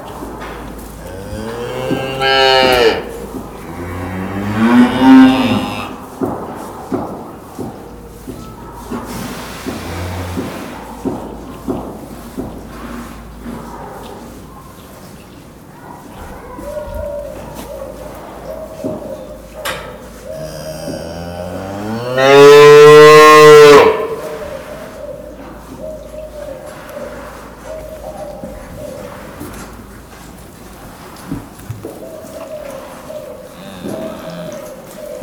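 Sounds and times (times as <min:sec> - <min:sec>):
cow mooing: 0:00.9 - 0:06.0, 0:20.3 - 0:24.4, 0:33.5 - 0:34.9.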